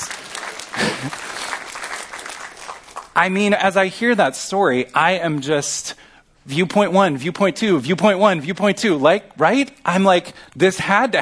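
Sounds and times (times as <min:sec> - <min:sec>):
rapid clapping: 0:00.0 - 0:03.2
speech: 0:01.0 - 0:01.3, 0:03.2 - 0:11.2.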